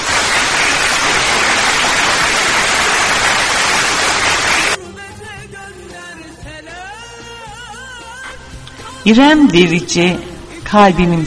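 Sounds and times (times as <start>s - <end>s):
applause: 0.0s - 4.8s
speech: 9.1s - 11.2s.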